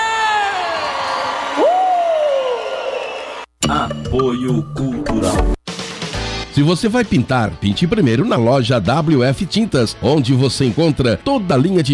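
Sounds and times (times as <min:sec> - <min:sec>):
round of applause and cheering: 0:00.2 - 0:03.5
speech: 0:04.2 - 0:05.5, 0:06.6 - 0:11.9.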